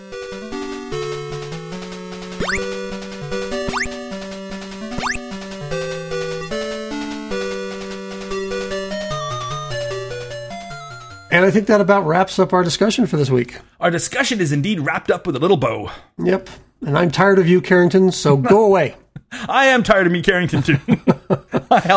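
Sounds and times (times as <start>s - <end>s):
buzzy electronic melody from a video game: 2.3s - 6.8s
speech: 2.4s - 2.8s, 11.3s - 21.9s
upward-sweeping zaps from the video game Rampage: 2.4s - 2.8s, 3.6s - 4.0s
laughter: 20.5s - 21.9s.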